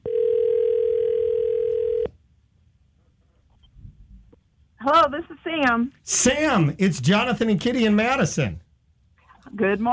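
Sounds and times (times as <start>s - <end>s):
steady telephone tone: 0.0s - 2.1s
faint low noise: 0.0s - 9.9s
speech: 5.1s - 8.6s, 9.6s - 9.9s.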